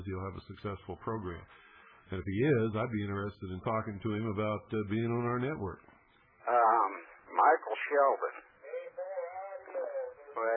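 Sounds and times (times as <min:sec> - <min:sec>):
speech: 0:00.0 - 0:08.4
scanner radio transmission: 0:06.4 - 0:10.5.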